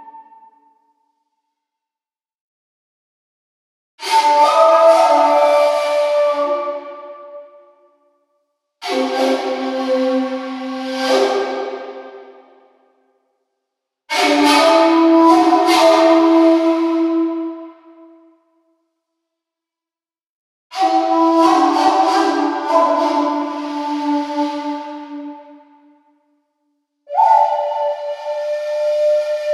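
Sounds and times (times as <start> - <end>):
Amazon flutes: 0.0 - 1.4, 4.0 - 12.9, 14.1 - 18.4, 20.7 - 26.2, 27.1 - 29.5.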